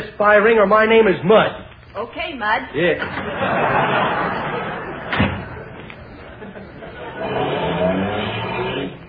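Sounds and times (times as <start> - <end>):
speech: 0.2 - 4.4
laughter: 3.0 - 7.8
car door slam: 5.1 - 5.5.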